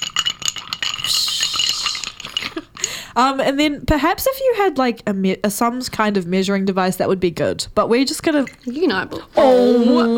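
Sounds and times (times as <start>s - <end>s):
ice cubes rattling against glass: 0.0s - 3.0s
speech: 3.2s - 10.1s.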